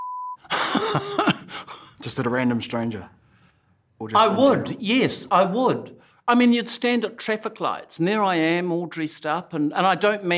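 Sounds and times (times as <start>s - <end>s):
censorship bleep: 0.0s - 0.4s
speech: 0.4s - 1.3s, 2.0s - 3.2s, 4.0s - 10.3s
laughter: 0.5s - 1.7s.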